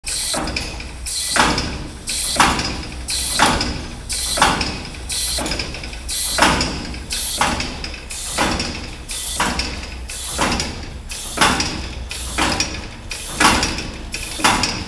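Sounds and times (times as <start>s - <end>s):
machine room machinery movement: 0.0s - 14.8s.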